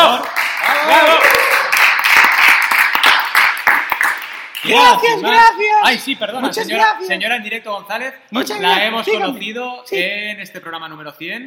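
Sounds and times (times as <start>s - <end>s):
live audience applause: 0.0s - 5.2s
speech: 4.7s - 11.4s.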